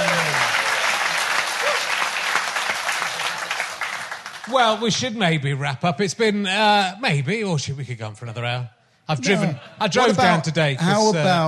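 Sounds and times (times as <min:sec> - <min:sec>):
audience applause: 0:00.0 - 0:04.8
speech: 0:04.5 - 0:11.4.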